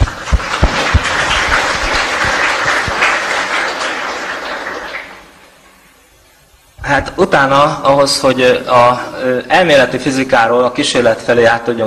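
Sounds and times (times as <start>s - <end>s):
audience applause: 0.0s - 5.6s
speech: 6.9s - 11.8s.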